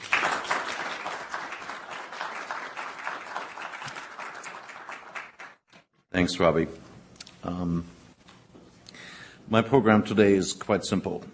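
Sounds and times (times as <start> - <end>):
audience applause welcoming a speaker at the American Enterprise Institute: 0.0 - 5.6
speech: 6.2 - 6.8, 7.4 - 8.0, 9.5 - 11.3.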